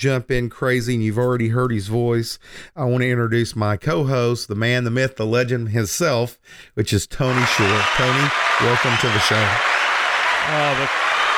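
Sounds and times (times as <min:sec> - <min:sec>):
speech: 0:00.0 - 0:09.8, 0:10.4 - 0:11.1
crowd applause sound effect: 0:07.3 - 0:11.3
short voiced cheer: 0:07.3 - 0:11.3.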